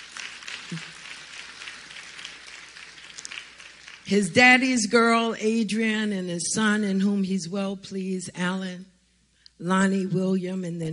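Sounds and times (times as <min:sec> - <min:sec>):
audience applause: 0:00.0 - 0:04.1
speech: 0:00.7 - 0:01.0, 0:04.1 - 0:08.9, 0:09.6 - 0:10.9.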